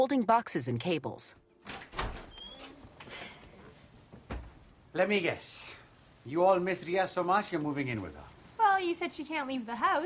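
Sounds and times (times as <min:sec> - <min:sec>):
speech: 0:00.0 - 0:01.8, 0:05.0 - 0:10.0
door being opened with a soft thud: 0:01.6 - 0:02.4, 0:04.2 - 0:04.6
faint rustling: 0:02.4 - 0:09.6.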